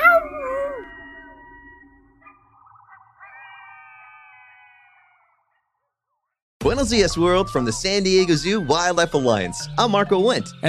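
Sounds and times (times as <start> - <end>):
coyotes howling: 0.0 - 5.6
speech: 6.7 - 10.6.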